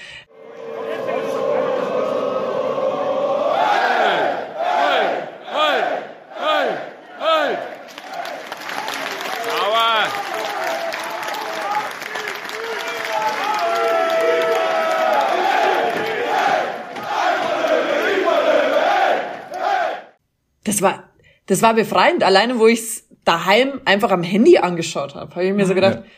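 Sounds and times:
football fans chanting in stadium: 0.2 - 20.2
speech: 20.8 - 26.1.

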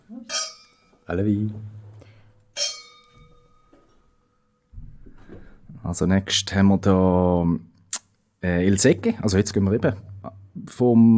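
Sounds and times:
wine glasses clinking in a toast during a tasting of Spanish wines: 0.3 - 0.9, 2.6 - 3.8
speech: 1.1 - 1.8, 5.9 - 7.7, 8.4 - 11.1.

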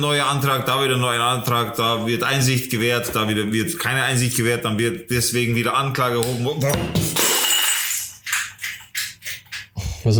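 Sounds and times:
speech: 0.0 - 7.2
half-full glass water bottle falling and shattering: 6.8 - 8.8
glass rattling: 6.8 - 9.0.

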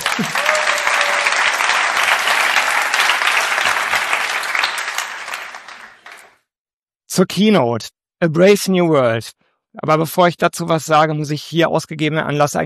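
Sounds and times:
audience applause: 0.0 - 6.4
speech: 0.2 - 0.6, 7.2 - 12.6.

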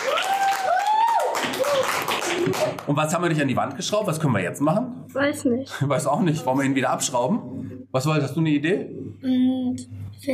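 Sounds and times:
applause after a modelling demonstration: 0.0 - 3.0
speech: 2.5 - 10.3.

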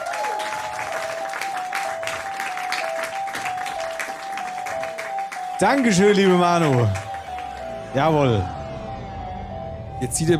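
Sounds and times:
audience applause: 0.0 - 7.9
speech: 5.6 - 7.0, 7.9 - 8.6, 10.0 - 10.3.

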